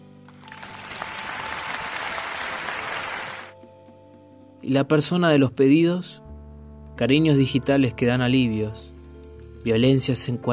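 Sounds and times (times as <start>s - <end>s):
many hands clapping in the neighbourhood: 0.3s - 3.5s
speech: 4.7s - 6.2s, 7.0s - 8.9s, 9.6s - 10.5s.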